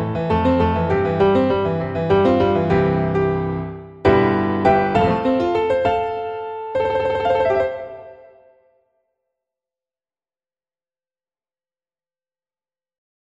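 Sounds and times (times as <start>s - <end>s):
piano: 0.0s - 8.8s.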